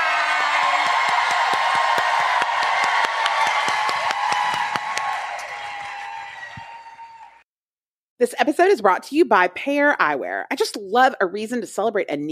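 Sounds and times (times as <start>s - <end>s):
audience applause and cheering: 0.0s - 7.5s
speech: 8.2s - 12.3s.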